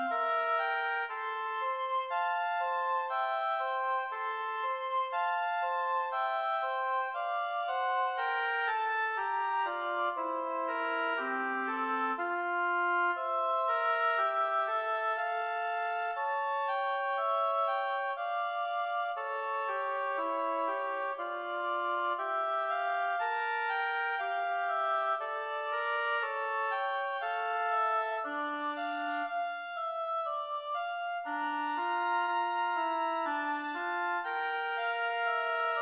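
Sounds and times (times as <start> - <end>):
easy oboe duo in D minor played adagio: 0.0 - 35.7.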